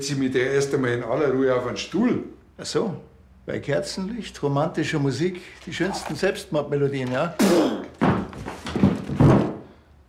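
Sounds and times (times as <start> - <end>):
speech: 0.0 - 7.9
person falling down onto the floor: 7.8 - 9.7.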